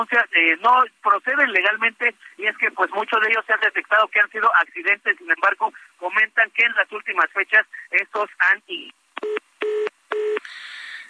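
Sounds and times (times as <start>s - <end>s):
speech: 0.0s - 9.4s
telephone dialing beeps: 9.2s - 10.4s.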